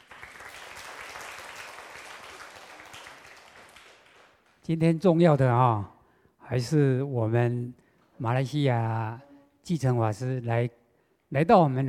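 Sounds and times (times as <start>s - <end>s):
audience applause: 0.0s - 4.4s
speech: 4.7s - 5.9s, 6.5s - 11.8s.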